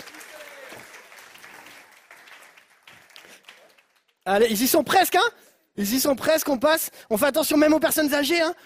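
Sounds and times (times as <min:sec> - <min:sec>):
audience applause: 0:00.0 - 0:04.2
speech: 0:04.2 - 0:08.6.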